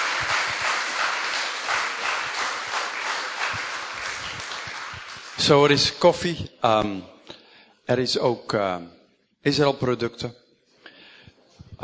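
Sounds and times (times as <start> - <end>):
crowd applauding: 0.0 - 5.9
speech: 5.4 - 7.1, 7.9 - 10.4.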